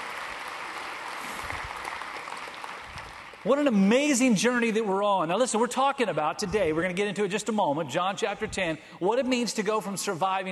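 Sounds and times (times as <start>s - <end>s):
audience applause: 0.0s - 3.8s
speech: 3.4s - 10.5s.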